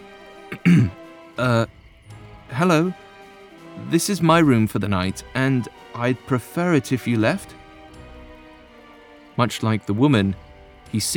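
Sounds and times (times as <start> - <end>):
person clearing throat: 0.5 - 1.6
speech: 0.6 - 1.8, 2.5 - 3.0, 3.8 - 7.6, 9.4 - 11.1.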